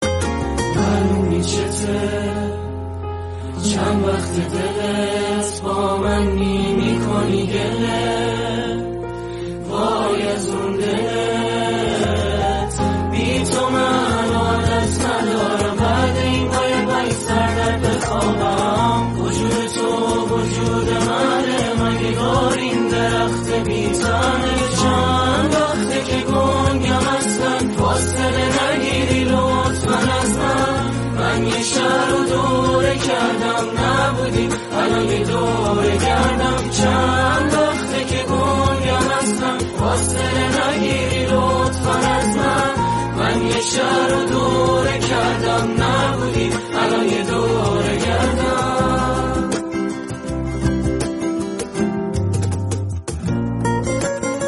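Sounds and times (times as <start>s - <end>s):
guitar: 0.0s - 54.4s.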